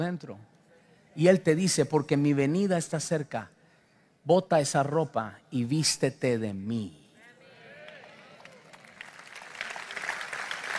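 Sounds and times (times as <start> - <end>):
speech: 0.0 - 0.5, 1.2 - 3.6, 4.2 - 7.0
audience applause: 7.9 - 10.7.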